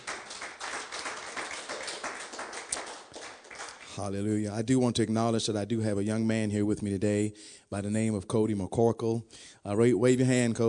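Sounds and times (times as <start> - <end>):
audience hand clapping: 0.0 - 4.0
speech: 4.0 - 10.6.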